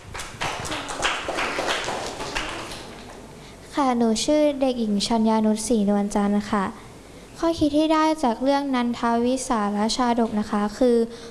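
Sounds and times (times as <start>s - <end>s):
classroom applause: 0.0s - 3.3s
speech: 3.8s - 6.8s, 7.4s - 11.2s.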